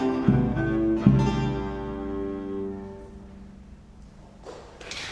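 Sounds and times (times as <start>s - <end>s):
Spanish Moorish Elizabethan renaissance early music recercada: 0.0s - 3.8s.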